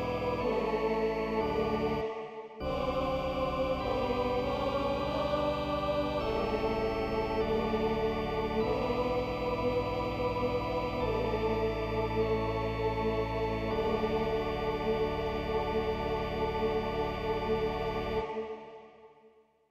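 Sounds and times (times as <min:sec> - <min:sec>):
choir singing a chorale in D major in German and French: 0:00.0 - 0:19.5
organ accompanying a chorale in D major: 0:02.6 - 0:18.2.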